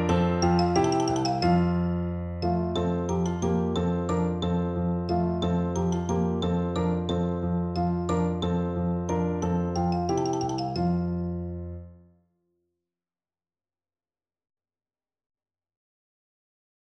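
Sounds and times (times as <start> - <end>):
xylophone: 0.0 - 11.8.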